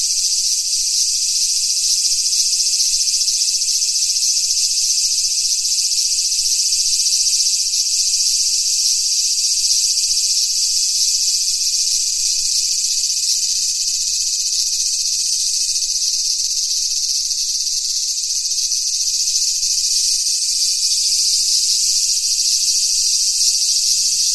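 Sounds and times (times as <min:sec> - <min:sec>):
cicadas buzzing: 0:00.0 - 0:24.3.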